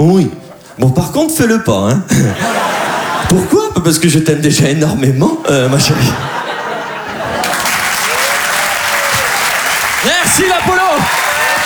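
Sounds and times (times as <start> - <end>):
speech: 0.0 - 2.6, 3.3 - 6.4, 10.3 - 11.2
laughter: 2.1 - 3.7, 5.4 - 11.6
audience applause: 6.8 - 11.6.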